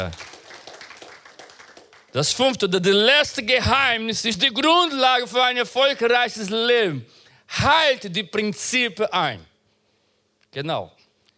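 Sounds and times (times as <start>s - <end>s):
speech: 0.0s - 0.3s, 2.1s - 9.5s, 10.5s - 11.0s
applause: 0.0s - 2.6s.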